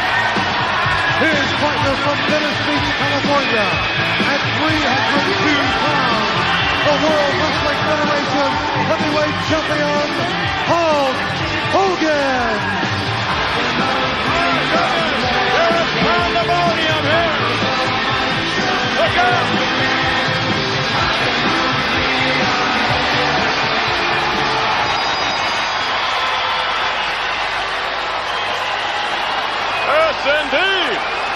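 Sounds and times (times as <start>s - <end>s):
big wrestling crowd roaring: 0.0s - 31.3s
speech: 1.8s - 17.4s, 29.9s - 31.2s.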